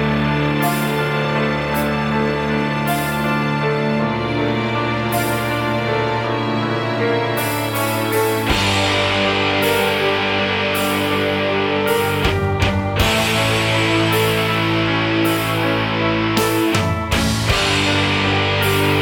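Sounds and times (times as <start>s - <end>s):
metal backing track with bass: 0.0s - 18.9s.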